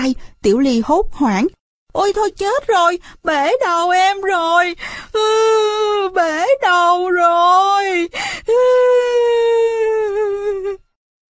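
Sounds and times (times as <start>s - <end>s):
speech: 0.0s - 9.7s
child crying after scraping a bleeding forehead: 5.2s - 10.8s.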